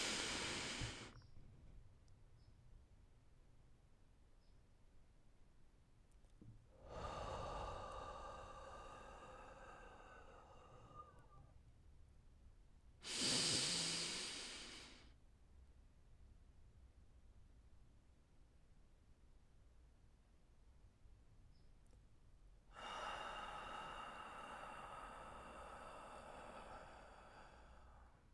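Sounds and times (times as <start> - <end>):
slow deep breathing exercise, inhale and exhale: 0.0 - 1.2, 6.8 - 11.6, 13.0 - 15.1, 22.7 - 28.3.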